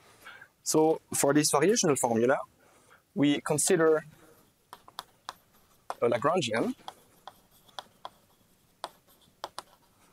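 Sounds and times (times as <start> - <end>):
speech: 0.7 - 2.6, 3.2 - 4.2, 6.0 - 6.9
writing on a board during a physics lecture: 4.7 - 10.1.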